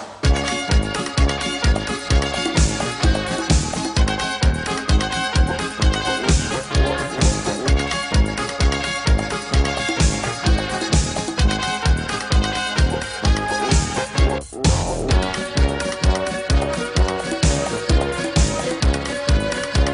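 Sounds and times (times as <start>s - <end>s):
techno music: 0.2s - 19.9s.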